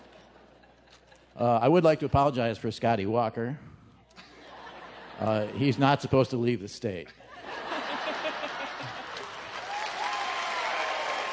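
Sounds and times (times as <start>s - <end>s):
laughter: 0.0s - 2.2s, 4.2s - 6.2s, 7.1s - 9.7s
speech: 1.4s - 3.7s, 5.2s - 7.2s
audience applause: 8.0s - 11.3s.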